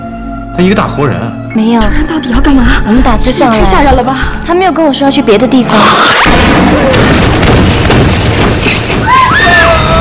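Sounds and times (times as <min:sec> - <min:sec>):
speech: 0:00.6 - 0:09.7
gunshot: 0:06.0 - 0:09.0.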